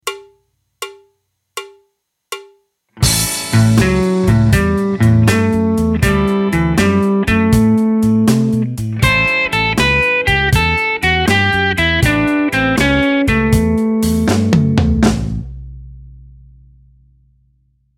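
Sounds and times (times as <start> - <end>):
blues music: 2.9 - 15.8.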